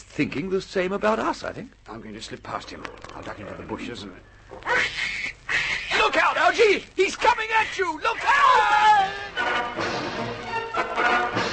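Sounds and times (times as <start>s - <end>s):
speech: 0.2s - 5.1s, 6.5s - 11.4s
pig squealing: 4.5s - 6.0s.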